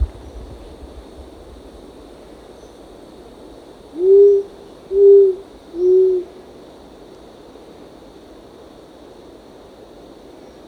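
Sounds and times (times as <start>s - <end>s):
insects droning: 0.0s - 10.6s
short-toed coucal hooting: 3.9s - 6.4s.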